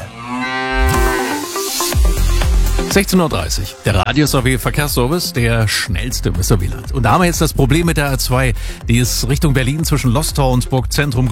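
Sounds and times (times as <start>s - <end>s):
cow moo from a mooing Müllermilch milk drink bottle: 0.0s - 1.8s
speech: 2.9s - 11.3s.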